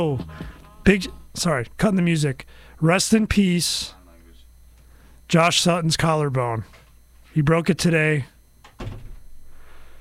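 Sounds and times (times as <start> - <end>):
speech: 0.0 - 4.0, 5.3 - 6.8, 7.4 - 9.0
faint lingering hum: 0.0 - 9.9
door closing: 8.6 - 9.2.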